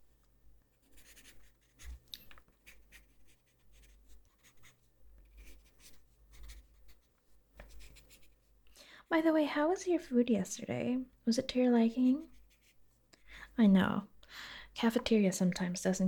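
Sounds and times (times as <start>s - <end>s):
pen scratching on paper writing notes: 0.8s - 2.0s, 2.6s - 8.4s, 12.2s - 12.8s
speech: 9.1s - 12.4s, 13.6s - 14.1s, 14.8s - 16.0s.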